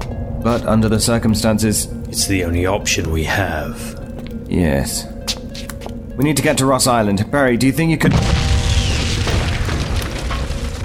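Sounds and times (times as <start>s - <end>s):
speech: 0.4s - 5.1s, 6.2s - 8.4s
explosion blowing a tower door away: 8.1s - 10.8s.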